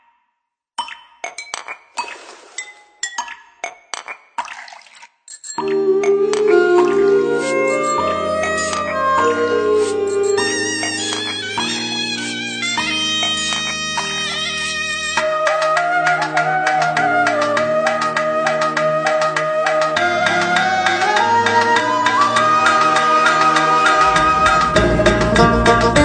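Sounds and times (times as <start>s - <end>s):
national anthem music: 5.8s - 26.0s.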